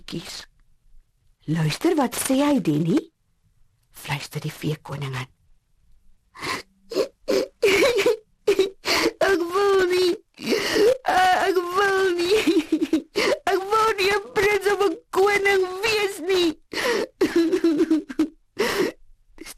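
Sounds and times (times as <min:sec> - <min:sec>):
speech: 0:00.1 - 0:00.5, 0:01.5 - 0:03.1, 0:04.0 - 0:05.4
voice imitating a little prince sobbing on his bed: 0:06.4 - 0:14.6, 0:15.9 - 0:19.0.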